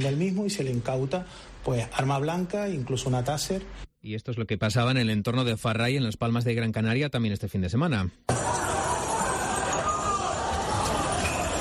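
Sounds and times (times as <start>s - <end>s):
speech: 0.0s - 8.6s
about 150 football ultras brawling: 8.3s - 11.5s.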